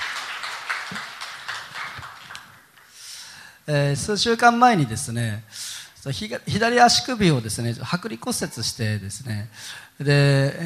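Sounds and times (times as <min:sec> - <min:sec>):
audience giving big applause: 0:00.0 - 0:02.9
speech: 0:03.7 - 0:10.6.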